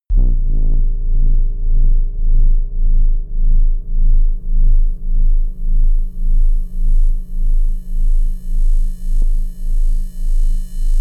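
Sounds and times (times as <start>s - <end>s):
bass drone wobble: 0.0s - 10.9s.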